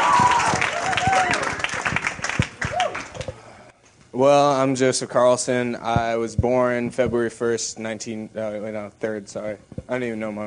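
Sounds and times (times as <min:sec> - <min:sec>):
audience applause welcoming a speaker: 0:00.0 - 0:03.4
speech: 0:04.2 - 0:10.4.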